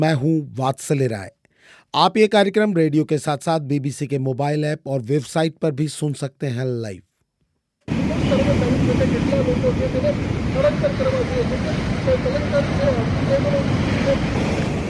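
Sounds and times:
speech: 0:00.0 - 0:07.1, 0:07.9 - 0:14.6
sea waves on the coast: 0:07.9 - 0:14.8.

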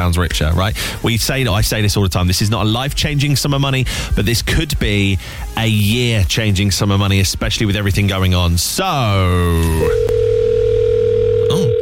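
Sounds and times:
speech: 0:00.0 - 0:10.2
telephone ringing tone on call: 0:09.8 - 0:11.8.

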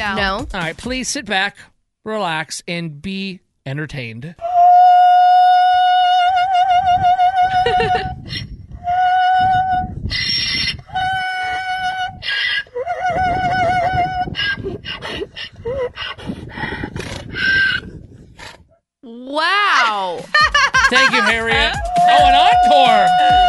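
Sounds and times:
speech: 0:00.0 - 0:04.5, 0:07.7 - 0:08.5, 0:19.1 - 0:23.4
donkey braying as if singing opera: 0:04.4 - 0:16.6, 0:17.2 - 0:17.9, 0:20.9 - 0:23.4
laughter: 0:07.6 - 0:08.1, 0:20.0 - 0:23.4.

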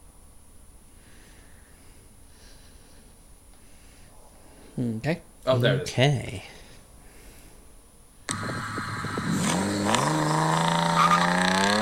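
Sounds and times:
speech: 0:04.8 - 0:06.6
car engine revving: 0:08.3 - 0:11.7.

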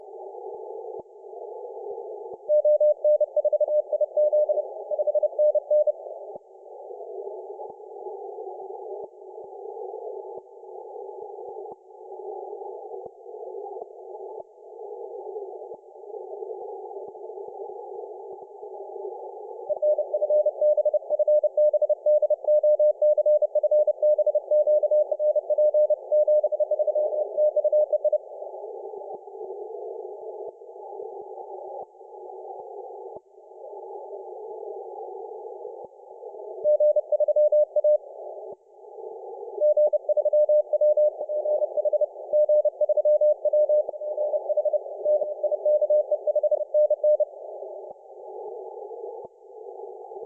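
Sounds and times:
Mauritius morse code signal on 30m band: 0:02.5 - 0:06.2, 0:19.6 - 0:28.5, 0:35.7 - 0:38.5, 0:39.6 - 0:50.2.

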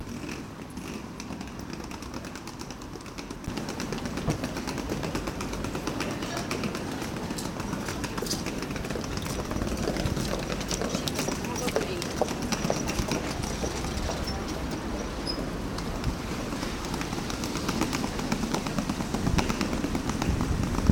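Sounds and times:
Albion Street ambience: 0:00.0 - 0:20.8.

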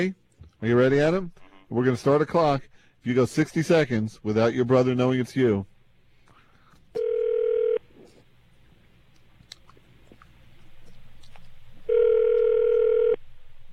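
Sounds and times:
speech: 0:00.0 - 0:05.7
phone line ringing tone: 0:07.0 - 0:07.8, 0:11.9 - 0:13.2.

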